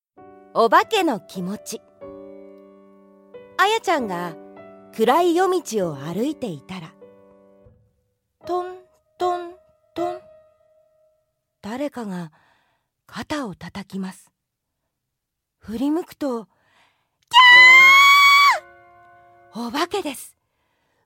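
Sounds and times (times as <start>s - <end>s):
background music: 0.2s - 11.5s, 17.3s - 20.3s.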